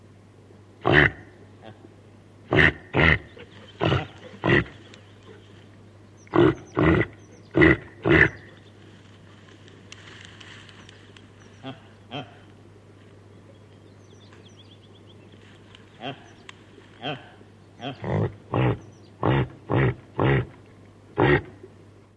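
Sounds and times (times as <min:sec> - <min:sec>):
steady low hum: 0:00.0 - 0:22.1
reindeer grunting calls: 0:00.8 - 0:01.9, 0:02.5 - 0:05.5, 0:06.2 - 0:08.6, 0:11.5 - 0:12.6, 0:15.9 - 0:16.4, 0:17.0 - 0:20.6, 0:21.2 - 0:21.6.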